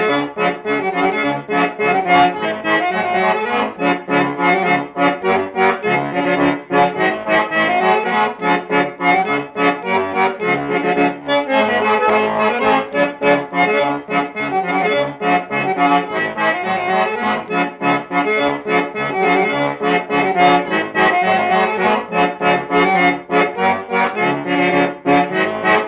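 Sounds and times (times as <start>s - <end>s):
folk music: 0.0s - 25.8s.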